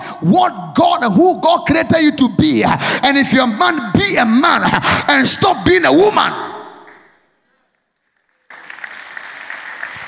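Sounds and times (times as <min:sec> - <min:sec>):
speech: 0:00.2 - 0:06.5
audience clapping hands: 0:06.8 - 0:07.1, 0:08.0 - 0:10.0.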